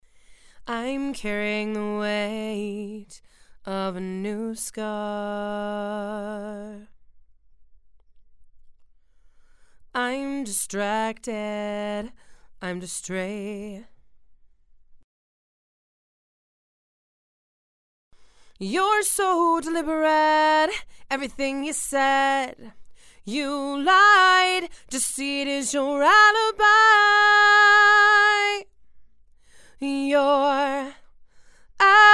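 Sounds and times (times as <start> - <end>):
female vocals: 0.6 - 6.9, 10.0 - 13.9, 18.6 - 28.7, 29.7 - 31.1, 31.7 - 32.1.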